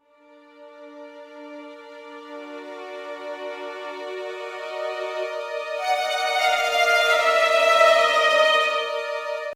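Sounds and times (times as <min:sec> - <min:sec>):
waltz accompaniment music: 0:01.9 - 0:09.5.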